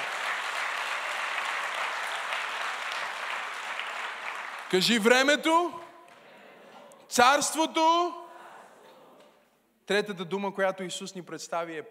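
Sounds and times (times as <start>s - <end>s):
audience applause: 0.0s - 5.0s
speech: 4.7s - 5.8s, 7.1s - 8.2s, 9.9s - 11.8s.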